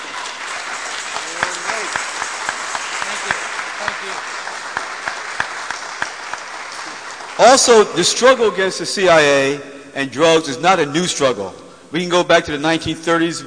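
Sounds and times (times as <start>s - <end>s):
audience applause: 0.0s - 8.0s
speech: 7.4s - 13.4s.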